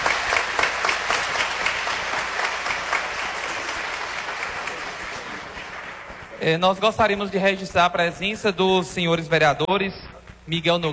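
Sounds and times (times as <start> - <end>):
audience applause: 0.0 - 6.4
speech: 6.4 - 10.9.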